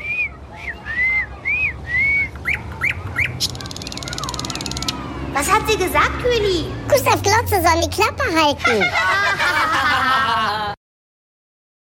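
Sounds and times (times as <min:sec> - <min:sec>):
nightingale singing: 0:00.0 - 0:05.0
speech: 0:05.7 - 0:09.4
laughter: 0:08.6 - 0:10.8.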